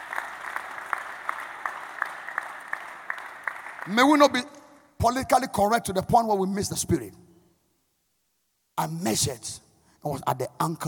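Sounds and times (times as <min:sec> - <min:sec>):
audience clapping in rhythm: 0:00.0 - 0:04.8
speech: 0:03.9 - 0:07.2, 0:08.8 - 0:10.8.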